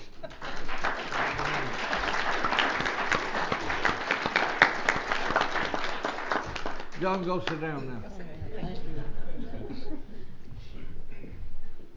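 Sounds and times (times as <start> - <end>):
laughter: 0.0 - 2.2, 7.8 - 11.0
audience applause: 0.0 - 7.8
speech: 7.0 - 8.2.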